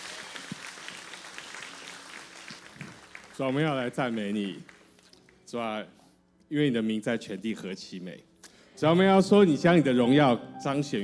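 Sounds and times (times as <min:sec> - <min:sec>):
audience applause: 0:00.0 - 0:04.9
speech: 0:03.4 - 0:04.7, 0:05.5 - 0:11.0.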